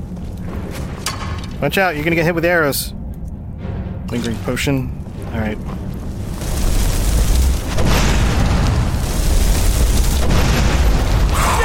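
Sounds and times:
speech: 0:01.6 - 0:03.0, 0:04.1 - 0:05.9
video game fireball spell explosion: 0:06.0 - 0:11.6.

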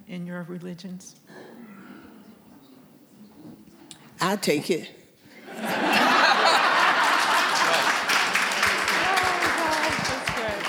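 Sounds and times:
speech: 0:00.1 - 0:01.4, 0:04.2 - 0:05.9
laughter: 0:05.3 - 0:10.3
women clapping: 0:06.4 - 0:10.6.

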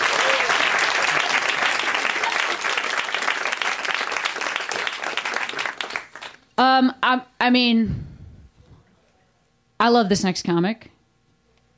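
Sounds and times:
audience applause: 0:00.0 - 0:06.4
speech: 0:06.6 - 0:08.0, 0:09.8 - 0:11.0.

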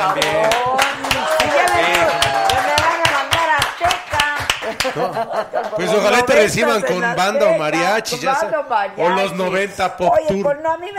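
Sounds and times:
speech: 0:00.0 - 0:00.4, 0:04.9 - 0:10.9
sharp regular hand claps: 0:00.0 - 0:05.9
laughter: 0:04.6 - 0:06.4.

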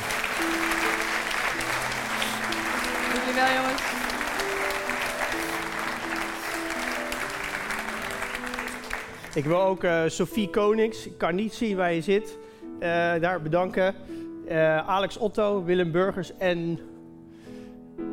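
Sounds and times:
audience applause: 0:00.0 - 0:09.6
speech: 0:03.4 - 0:04.0, 0:09.4 - 0:16.9.

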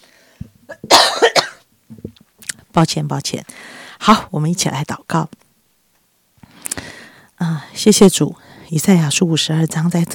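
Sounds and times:
brief quiet breath: 0:00.0 - 0:00.5, 0:03.5 - 0:04.0, 0:06.4 - 0:07.8, 0:08.4 - 0:08.7
person coughing: 0:00.7 - 0:01.6
speech: 0:02.8 - 0:05.4, 0:07.8 - 0:10.1.

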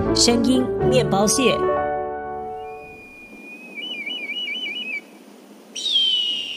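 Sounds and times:
speech: 0:00.1 - 0:01.7
bald eagle call: 0:02.6 - 0:05.1, 0:05.7 - 0:06.5.

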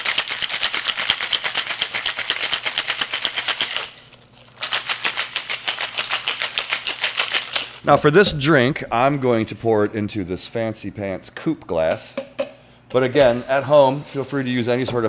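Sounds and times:
cocktail shaken with ice in a shaker: 0:00.0 - 0:07.8
speech: 0:07.8 - 0:12.2, 0:12.9 - 0:15.0.

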